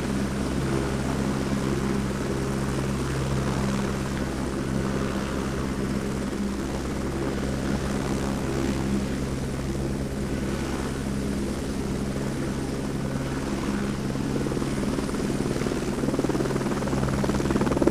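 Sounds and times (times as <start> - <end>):
helicopter approaching, landing and leaving: 0.0 - 17.8.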